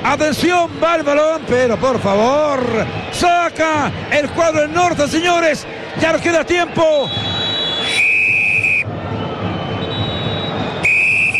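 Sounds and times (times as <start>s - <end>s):
stadium crowd roar: 0.0s - 11.3s
speech: 0.1s - 8.0s
referee's whistle ending the first half: 7.0s - 8.9s, 9.6s - 11.3s.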